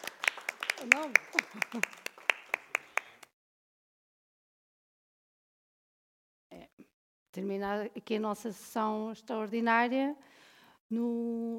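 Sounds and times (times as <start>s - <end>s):
audience applause: 0.0s - 3.2s
speech: 0.8s - 2.1s, 7.4s - 11.5s.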